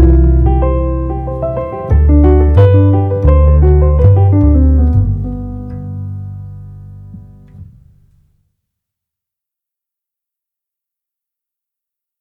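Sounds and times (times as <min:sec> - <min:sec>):
string trio improvising: 0:00.0 - 0:07.6.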